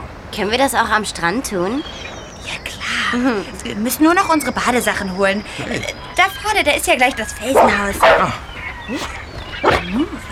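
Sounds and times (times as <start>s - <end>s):
speech: 0.3s - 9.2s
dog Timmy giving short whining barks: 7.5s - 8.4s.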